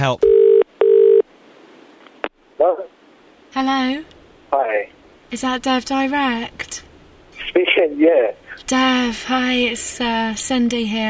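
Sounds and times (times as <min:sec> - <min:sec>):
speech: 0:00.0 - 0:00.3, 0:03.6 - 0:11.0
telephone dial tone of a call to a personal hotline: 0:00.2 - 0:01.2.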